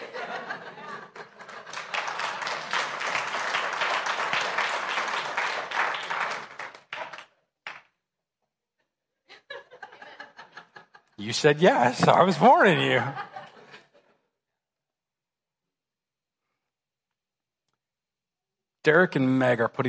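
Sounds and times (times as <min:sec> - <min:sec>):
laughter: 0:00.0 - 0:03.0, 0:09.3 - 0:14.3
crowd clapping along: 0:00.8 - 0:08.0
speech: 0:11.2 - 0:13.3, 0:18.8 - 0:19.8.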